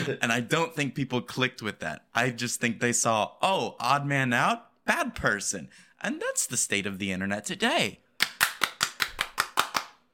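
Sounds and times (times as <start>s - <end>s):
speech: 0.0s - 8.0s
hands clapping: 8.2s - 10.1s.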